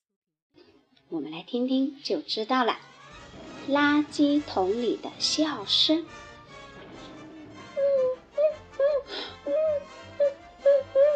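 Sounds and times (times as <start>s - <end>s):
speech: 1.1s - 2.9s, 3.7s - 6.3s
someone crying sadly: 7.2s - 11.1s
sharp breathy gasp: 9.0s - 9.5s.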